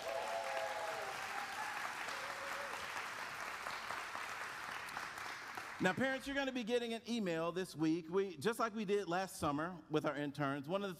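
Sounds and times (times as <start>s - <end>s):
audience applause: 0.0s - 6.0s
speech: 5.8s - 10.9s.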